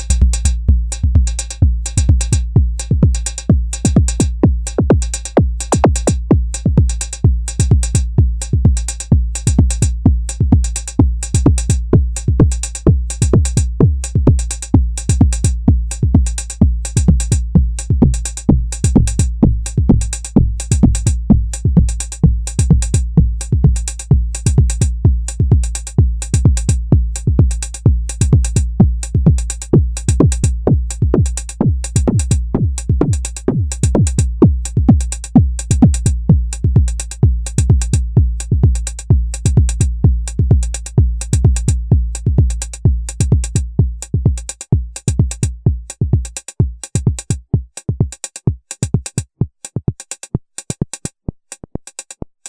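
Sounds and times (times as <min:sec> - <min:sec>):
kick drum: 0:00.2 - 0:52.4.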